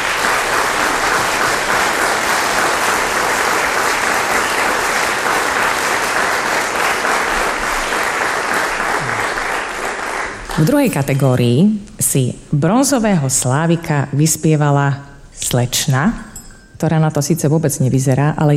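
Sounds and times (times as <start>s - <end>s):
audience applause: 0.0s - 10.9s
speech: 10.6s - 18.5s.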